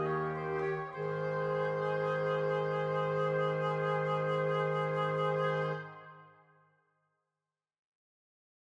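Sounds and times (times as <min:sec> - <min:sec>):
woodwind quartet playing a fugue in major: 0:00.0 - 0:06.1.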